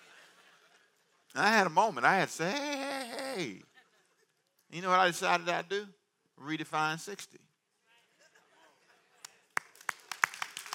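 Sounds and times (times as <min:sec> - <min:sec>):
speech: 0:01.4 - 0:03.7, 0:04.7 - 0:07.5
weak hand clapping: 0:09.2 - 0:10.7.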